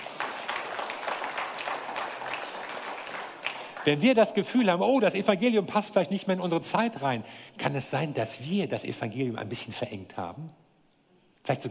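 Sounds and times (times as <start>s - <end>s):
audience applause: 0.0s - 4.0s
speech: 3.8s - 10.6s, 11.5s - 11.6s.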